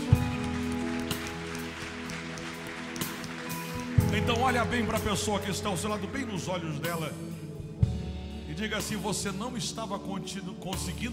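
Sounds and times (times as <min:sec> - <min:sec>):
audience applauding: 0:00.0 - 0:05.6
speech: 0:04.3 - 0:07.3, 0:08.6 - 0:11.1.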